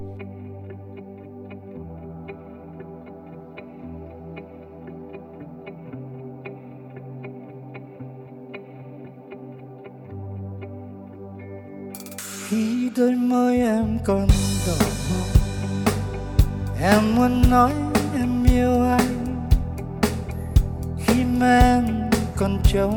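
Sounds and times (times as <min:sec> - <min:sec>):
Vietnamese pop song playing: 0:12.4 - 0:22.9
speech: 0:12.5 - 0:15.4, 0:16.8 - 0:17.9, 0:18.5 - 0:18.9, 0:21.4 - 0:22.9.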